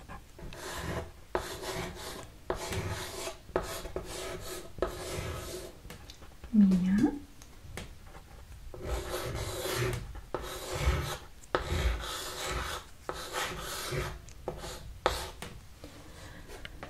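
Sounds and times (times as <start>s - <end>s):
chalk scraping and rubbing across a surface: 0.0s - 5.8s, 8.7s - 15.4s.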